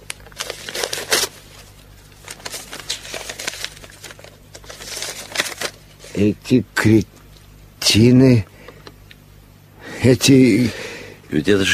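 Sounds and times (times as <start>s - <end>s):
crisp paper crinkling and tearing: 0.0s - 6.2s
faint low hum: 0.0s - 11.7s
speech: 6.2s - 7.2s, 7.9s - 8.5s, 10.0s - 11.7s.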